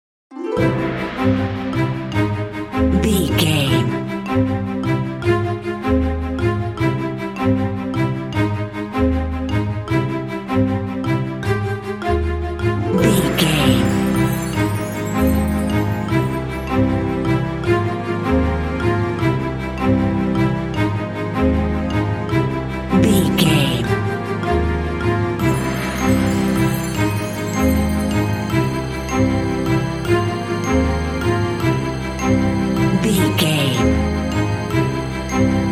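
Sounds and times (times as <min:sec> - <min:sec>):
bright bouncy happy classical music: 0:00.3 - 0:35.7.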